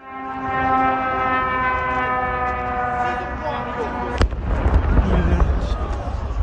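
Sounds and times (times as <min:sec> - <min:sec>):
whine of an approaching drone: 0:00.0 - 0:06.4
blast: 0:04.1 - 0:06.4.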